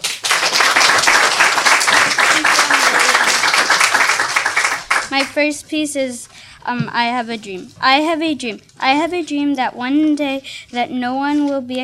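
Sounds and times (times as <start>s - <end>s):
audience applause: 0.0s - 5.3s
speech: 5.2s - 11.8s.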